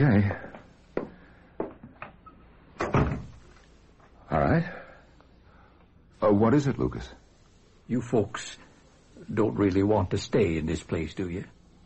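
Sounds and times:
speech: 0.0s - 0.5s, 6.3s - 7.2s, 7.9s - 11.6s
door being shut: 2.8s - 3.4s.

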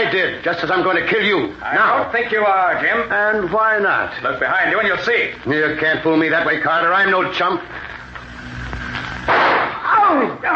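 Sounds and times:
speech: 0.1s - 7.9s, 10.1s - 10.5s
gunshot in a radio drama: 9.2s - 9.8s.

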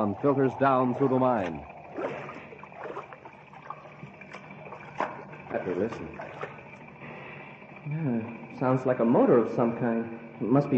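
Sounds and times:
speech: 0.0s - 1.7s, 5.5s - 6.5s, 7.8s - 10.7s
wading through water in partly flooded shaft: 0.0s - 7.8s.

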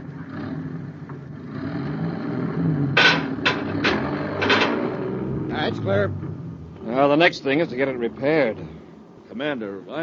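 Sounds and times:
truck pulling forward: 0.0s - 6.8s
speech: 5.7s - 6.3s, 6.9s - 10.0s.

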